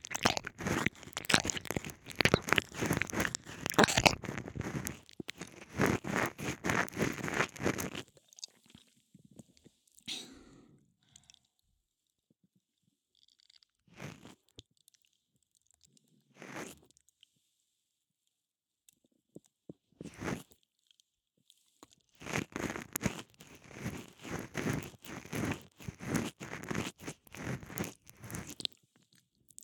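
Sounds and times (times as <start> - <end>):
soothing ear licking: 0.0 - 8.5, 22.2 - 28.7.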